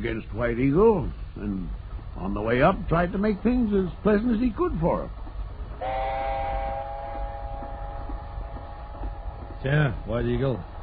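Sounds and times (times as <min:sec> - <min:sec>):
speech: 0:00.0 - 0:05.2, 0:09.6 - 0:10.7
moving train rumbling: 0:00.0 - 0:10.8
train whistle: 0:05.8 - 0:10.2.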